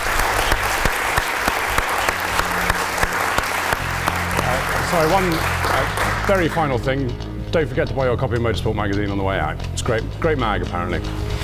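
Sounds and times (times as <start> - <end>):
crowd applauding: 0.0 - 6.9
speech: 4.9 - 11.3.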